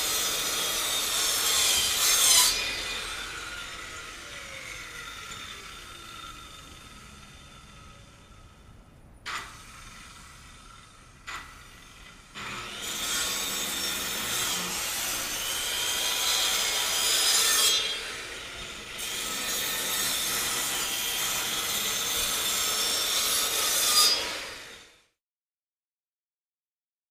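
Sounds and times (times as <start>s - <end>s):
power saw sawing outdoors: 0.0s - 25.2s.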